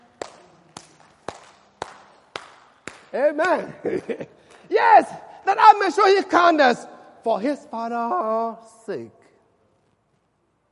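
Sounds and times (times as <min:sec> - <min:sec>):
audience clapping hands in unison: 0:00.0 - 0:03.7
speech: 0:03.1 - 0:09.2
laughter: 0:03.5 - 0:04.7.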